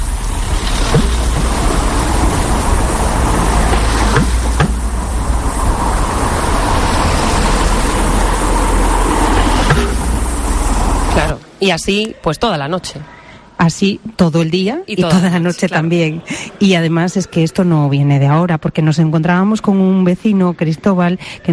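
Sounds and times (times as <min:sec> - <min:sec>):
street traffic noise from passing vehicles: 0:00.0 - 0:11.6
speech: 0:11.6 - 0:21.5.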